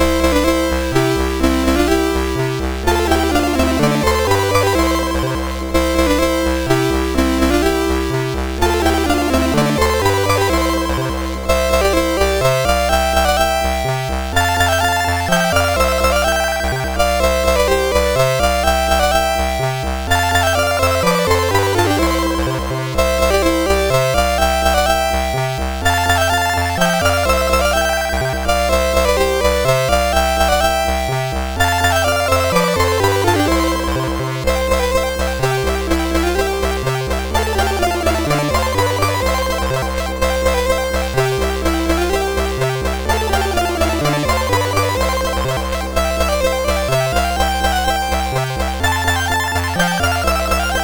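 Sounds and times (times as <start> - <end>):
chiptune game music on MOS6581R3 chip: 0.0 - 50.8.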